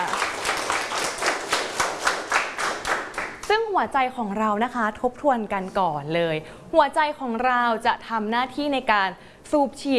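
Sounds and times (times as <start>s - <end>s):
students clapping hands: 0.0s - 3.6s
speech: 3.5s - 9.9s.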